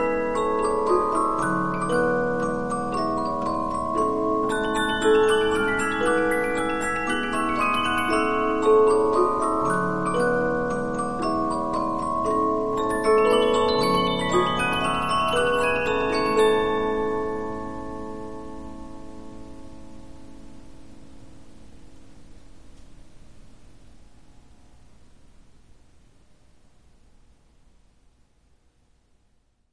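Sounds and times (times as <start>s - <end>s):
Polyphon 15-inch disc music box playing: 0.0s - 19.0s.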